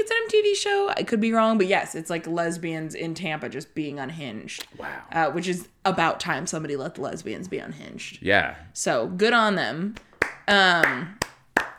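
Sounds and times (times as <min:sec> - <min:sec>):
speech: 0:00.0 - 0:11.2
hands clapping: 0:09.9 - 0:11.7
crowd cheering: 0:10.0 - 0:11.7.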